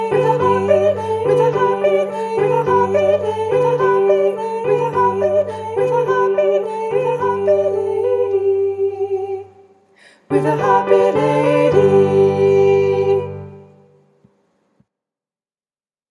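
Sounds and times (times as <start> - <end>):
piano melody in unison in a studio: 0.0 - 9.4, 10.3 - 13.8.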